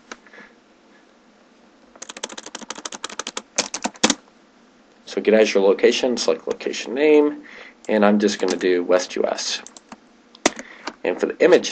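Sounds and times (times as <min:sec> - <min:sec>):
fingers typing a command on a computer keyboard: 0:02.0 - 0:04.2, 0:09.6 - 0:10.6
speech: 0:05.1 - 0:09.7, 0:11.0 - 0:11.7.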